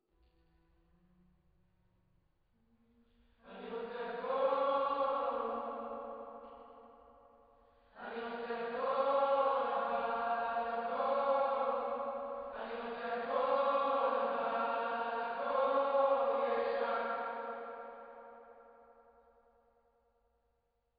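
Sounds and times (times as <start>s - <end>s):
choir singing: 3.4s - 7.0s, 8.0s - 18.5s.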